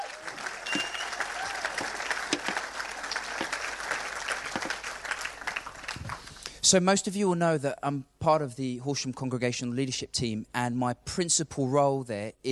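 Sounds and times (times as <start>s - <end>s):
applause: 0.0s - 6.5s
speech: 6.7s - 12.4s.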